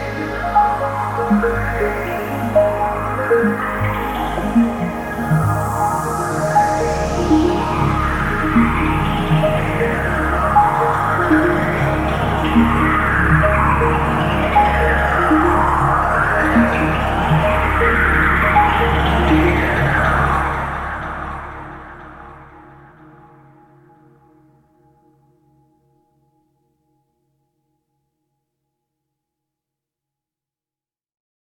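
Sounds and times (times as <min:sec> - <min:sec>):
layered musical motif stack: 0:00.0 - 0:23.4.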